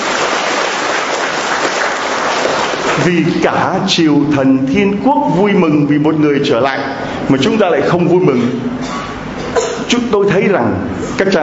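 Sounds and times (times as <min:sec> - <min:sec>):
congregation applauding during a church service: 0:00.0 - 0:03.4
speech: 0:03.0 - 0:09.1, 0:09.9 - 0:11.4.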